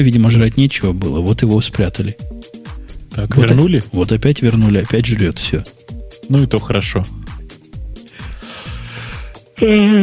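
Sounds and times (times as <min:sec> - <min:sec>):
speech: 0:00.0 - 0:02.6, 0:03.2 - 0:07.2, 0:09.6 - 0:10.0
person yawning: 0:09.6 - 0:10.0.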